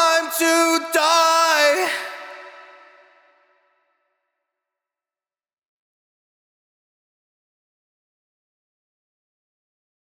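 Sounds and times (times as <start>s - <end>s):
heavy wet a cappella main vocal in A minor: 0.0s - 3.4s.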